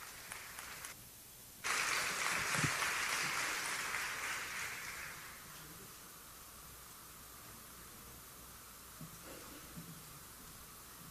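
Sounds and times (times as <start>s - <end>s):
audience applause: 0.0s - 1.0s, 1.6s - 5.6s.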